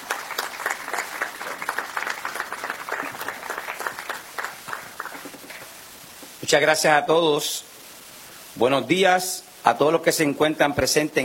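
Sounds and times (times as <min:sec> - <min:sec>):
audience applause: 0:00.0 - 0:05.7
speech: 0:06.5 - 0:07.7, 0:08.6 - 0:11.2.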